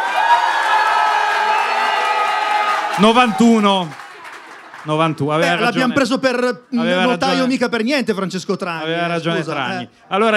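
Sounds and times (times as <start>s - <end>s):
studio audience cheering and whooping: 0.0s - 4.8s
studio audience applause: 0.0s - 6.1s
speech: 3.0s - 4.0s, 4.8s - 10.3s.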